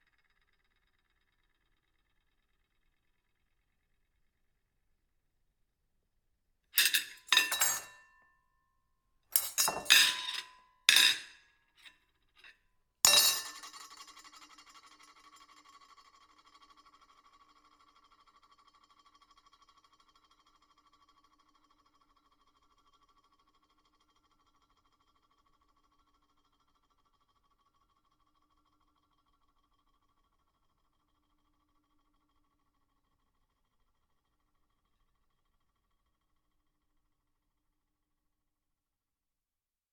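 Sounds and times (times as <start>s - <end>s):
ceramic plate: 6.8s - 8.1s, 9.3s - 12.5s, 13.1s - 14.0s.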